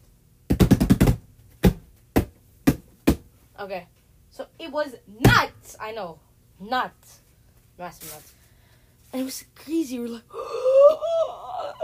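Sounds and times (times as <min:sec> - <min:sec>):
hand slapping a cardboard box: 0:00.5 - 0:03.3
speech: 0:03.6 - 0:07.2, 0:07.8 - 0:08.4, 0:09.1 - 0:11.8.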